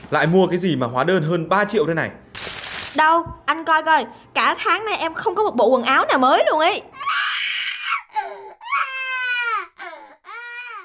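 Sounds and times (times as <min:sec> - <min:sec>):
speech: 0:00.1 - 0:02.2, 0:02.9 - 0:07.1
infant crying at home: 0:06.9 - 0:10.8.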